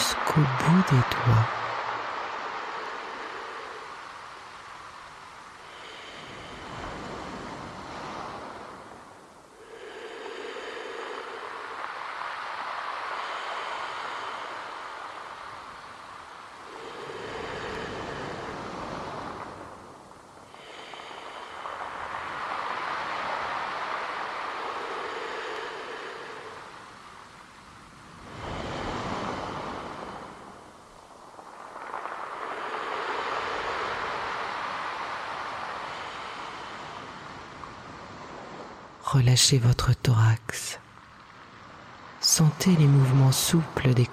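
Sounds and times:
sea waves breaking: 0:00.0 - 0:39.8, 0:40.4 - 0:44.1
speech: 0:00.4 - 0:01.6, 0:39.2 - 0:40.8, 0:42.4 - 0:44.1.

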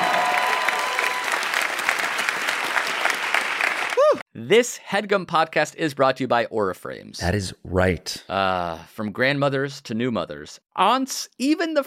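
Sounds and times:
faint whoops: 0:00.0 - 0:01.6, 0:03.9 - 0:04.2
crowd clapping: 0:00.0 - 0:04.2
speech: 0:04.4 - 0:11.8.

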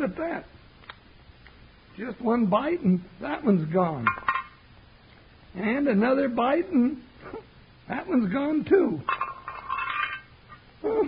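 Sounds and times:
speech: 0:00.0 - 0:00.6, 0:02.0 - 0:04.3, 0:05.5 - 0:09.2, 0:10.8 - 0:11.0
bones clinking in a frying pan: 0:09.1 - 0:10.6.

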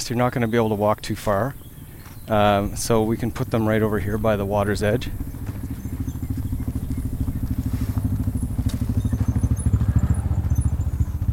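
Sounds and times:
speech: 0:00.0 - 0:01.6, 0:02.3 - 0:05.3
four-wheel ATV engine rumbling: 0:00.0 - 0:11.3
faint crackles: 0:04.9 - 0:09.4.

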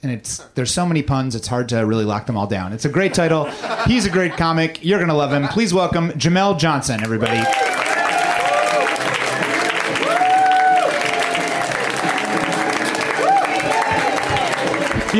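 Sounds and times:
speech: 0:00.0 - 0:07.7
laughter: 0:02.9 - 0:05.9
audience applause: 0:07.0 - 0:15.1.

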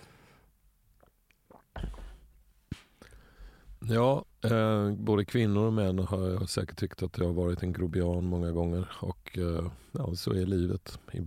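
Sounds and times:
person gulping a drink: 0:01.0 - 0:02.4
speech: 0:03.9 - 0:11.2.

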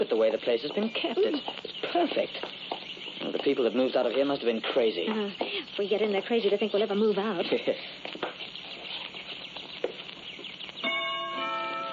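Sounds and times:
speech: 0:00.0 - 0:02.5, 0:03.2 - 0:08.1
clock chiming: 0:10.8 - 0:11.9.

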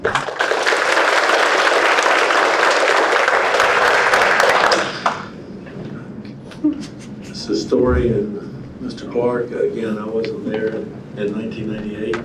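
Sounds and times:
courtroom applause: 0:00.0 - 0:05.4
speech: 0:07.8 - 0:12.2.

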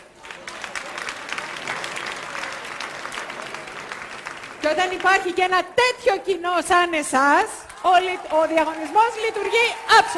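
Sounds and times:
audience applause: 0:00.0 - 0:05.4, 0:07.6 - 0:10.1
speech: 0:04.6 - 0:10.1.

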